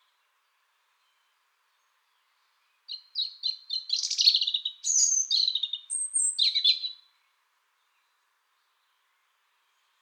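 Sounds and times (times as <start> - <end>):
European robin singing: 2.9 - 7.0.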